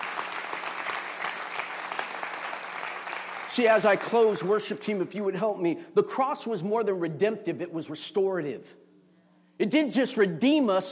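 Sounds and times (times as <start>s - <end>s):
audience applause: 0.0s - 4.6s
speech: 3.6s - 8.8s, 9.6s - 10.8s.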